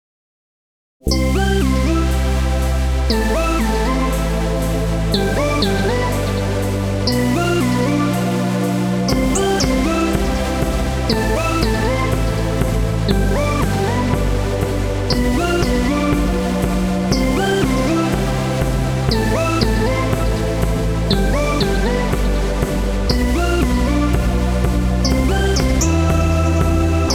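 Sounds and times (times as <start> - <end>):
MIDI music: 1.1 - 27.1.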